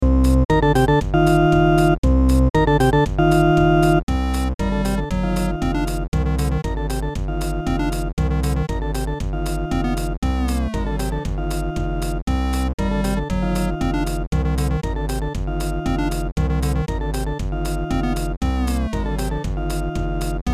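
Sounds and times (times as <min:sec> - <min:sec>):
techno boss battle game music: 0:00.0 - 0:20.5.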